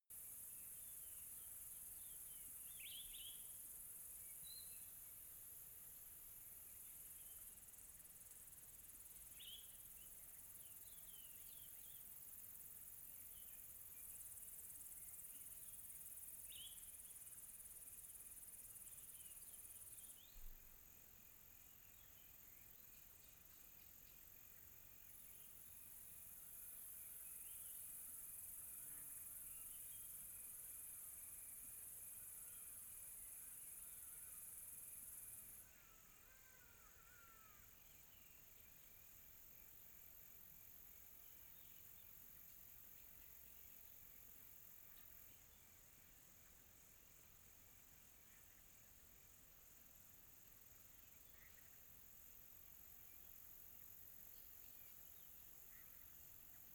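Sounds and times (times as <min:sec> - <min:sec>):
cricket chirping on a quiet tropical night: 0:00.1 - 0:56.7.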